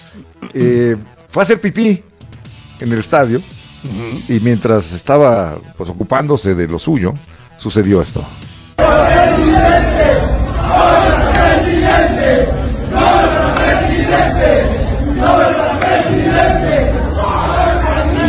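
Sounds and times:
speech: 0.2s - 2.1s, 2.8s - 11.1s
stadium crowd shouting in unison at someone: 8.8s - 18.2s.

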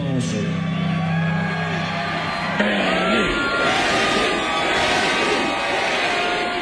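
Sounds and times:
concert crowd cheering as a 99-year-old woman crowd surfs: 0.2s - 6.6s.

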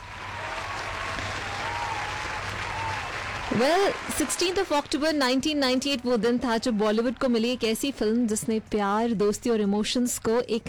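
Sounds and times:
applause: 0.0s - 5.2s
speech: 3.5s - 10.6s.

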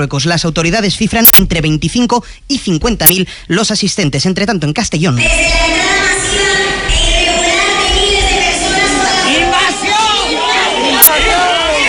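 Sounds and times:
speech: 0.0s - 6.6s
hundreds of people shouting invasion at a protest: 7.3s - 11.8s.

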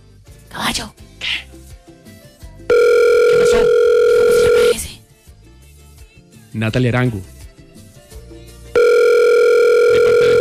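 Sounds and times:
speech: 0.5s - 1.4s, 6.6s - 7.3s
phone line ringing tone: 2.7s - 4.8s, 8.8s - 10.4s.

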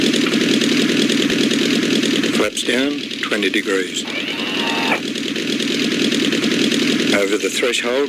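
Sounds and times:
aircraft engine throttled back on a landing approach: 0.0s - 7.6s
speech: 2.5s - 4.3s, 7.2s - 8.0s.

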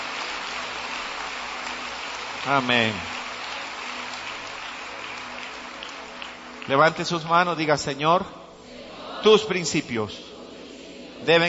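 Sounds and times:
audience applause: 0.0s - 7.2s
speech: 2.4s - 3.1s, 6.7s - 8.4s, 9.2s - 10.3s, 11.2s - 11.4s.

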